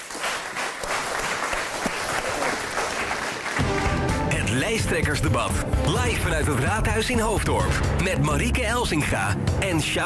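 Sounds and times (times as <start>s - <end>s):
audience applause: 0.0s - 4.5s
speech: 4.6s - 10.0s.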